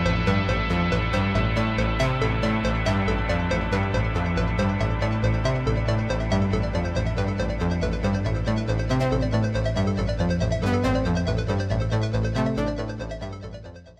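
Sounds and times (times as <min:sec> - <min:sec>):
Oberheim synthesizer: 0:00.0 - 0:13.9.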